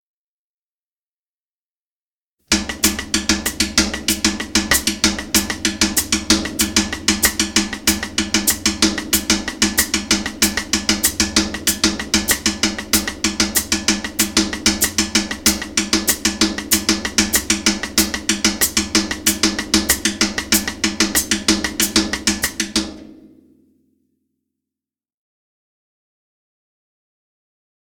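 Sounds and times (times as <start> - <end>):
cascara rhythm groove: 2.5 - 23.2.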